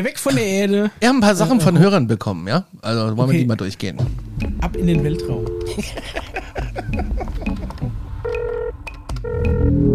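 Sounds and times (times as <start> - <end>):
speech: 0.0 - 7.1
laughter: 5.7 - 7.9
fax machine connecting over telephone line: 8.2 - 9.8.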